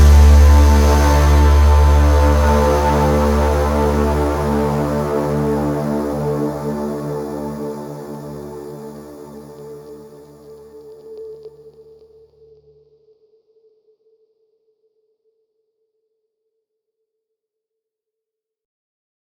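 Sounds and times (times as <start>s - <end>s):
suspense tension music: 0.0s - 9.6s.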